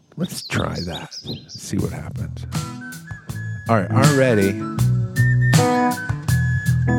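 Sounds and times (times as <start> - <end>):
speech: 0.2 - 2.7, 3.7 - 4.8, 5.6 - 6.2
whistle from Ireland carrying a melody: 2.6 - 6.9.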